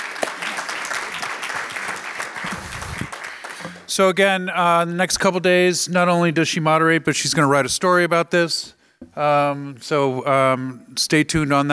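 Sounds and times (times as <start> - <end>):
audience applause: 0.0 - 3.9
speech: 4.0 - 11.7.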